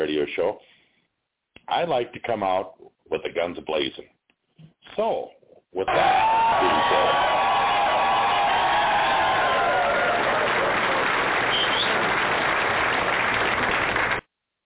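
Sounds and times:
speech: 0.0s - 0.8s, 1.7s - 7.4s
studio audience cheering: 5.9s - 14.2s.

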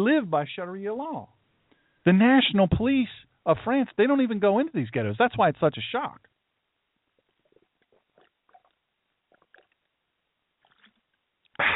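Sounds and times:
speech: 0.0s - 1.4s, 2.0s - 6.3s
person gulping water: 7.1s - 10.0s, 10.6s - 11.7s.

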